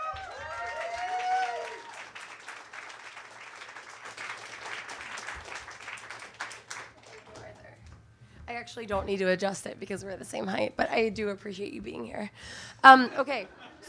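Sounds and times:
person whooping or cheering: 0.0s - 2.0s
audience applause at a reading event: 0.0s - 7.7s
speech: 8.6s - 13.8s
laughter: 12.9s - 13.8s.

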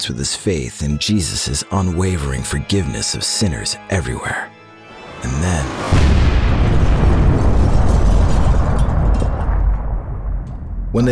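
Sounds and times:
speech: 0.0s - 4.6s, 5.2s - 6.2s, 11.0s - 11.1s
remote-triggered bomb blasting through a house's brick front wall: 5.6s - 11.0s.

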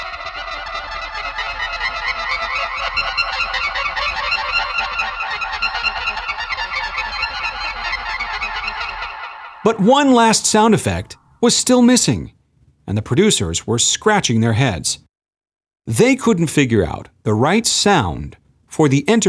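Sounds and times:
transporter tones on Magic Box organ: 0.0s - 11.6s
speech: 9.6s - 15.1s, 15.8s - 19.2s.

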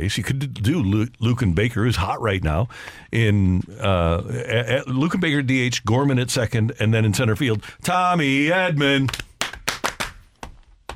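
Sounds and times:
speech: 0.0s - 9.3s
slow clap: 9.0s - 10.9s.

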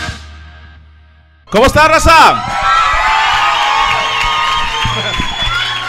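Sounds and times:
speech: 1.5s - 2.7s
audience applause: 2.4s - 5.8s.

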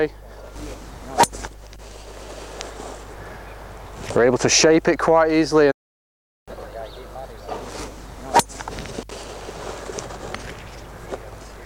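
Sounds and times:
speech: 0.0s - 0.2s, 4.2s - 5.7s
golf ball struck with a fairway wood: 0.8s - 1.9s, 7.5s - 9.0s.

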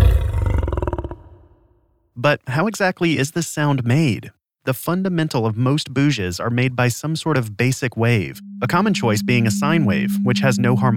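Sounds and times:
lion roaring: 0.0s - 1.6s
speech: 2.2s - 10.9s.

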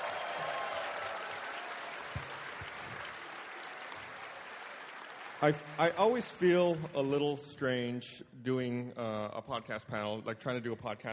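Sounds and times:
audience applause at a live podcast panel: 0.0s - 7.0s
speech: 5.4s - 11.1s.

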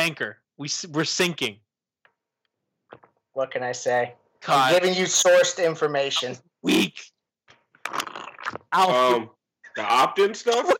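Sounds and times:
speech: 0.0s - 1.6s, 2.9s - 7.1s, 8.7s - 10.7s
person slurping a drink through a straw: 7.8s - 8.8s.

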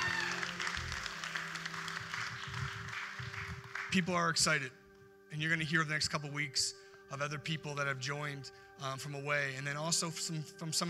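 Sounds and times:
crowd applause: 0.0s - 4.0s
speech: 3.9s - 10.8s.

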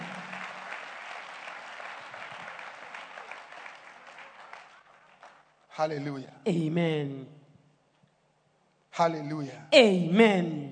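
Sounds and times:
audience clapping hands: 0.0s - 6.0s
speech: 5.8s - 7.4s, 9.0s - 10.7s.

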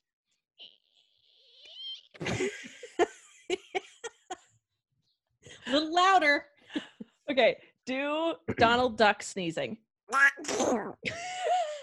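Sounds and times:
voice imitating a balloon being twisted: 0.6s - 2.2s, 10.1s - 11.0s
speech: 2.2s - 2.7s, 5.8s - 6.5s, 7.4s - 11.2s.

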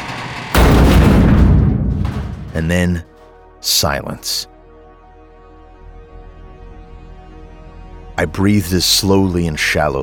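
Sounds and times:
creature smashing against garage door: 0.6s - 2.9s
speech: 2.6s - 4.5s, 8.2s - 10.0s.

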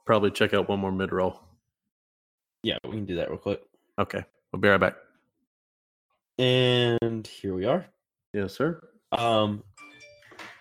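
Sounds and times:
speech: 0.1s - 1.5s, 2.6s - 5.0s, 6.4s - 9.7s
phone notification alert: 9.8s - 10.6s.

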